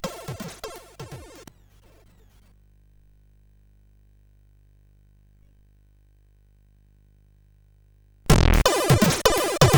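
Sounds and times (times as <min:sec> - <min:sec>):
holiday funk on SID chip CSG 8580R5: 0:00.0 - 0:01.5, 0:08.3 - 0:09.7.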